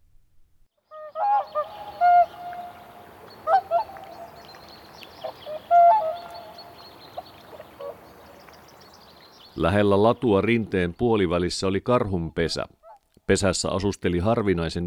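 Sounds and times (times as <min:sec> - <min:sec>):
whooper swans calling with bugling honks: 0:00.9 - 0:09.6, 0:12.8 - 0:13.1
soft steady hiss: 0:01.4 - 0:14.8
speech: 0:09.6 - 0:14.8.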